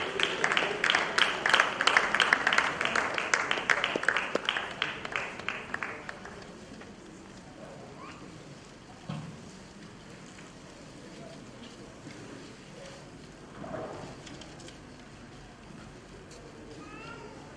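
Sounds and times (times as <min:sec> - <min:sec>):
audience applause: 0:00.0 - 0:07.0.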